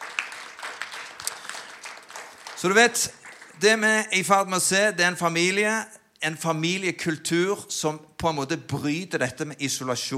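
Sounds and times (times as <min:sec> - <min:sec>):
audience applause: 0:00.0 - 0:03.6
speech: 0:02.6 - 0:10.1.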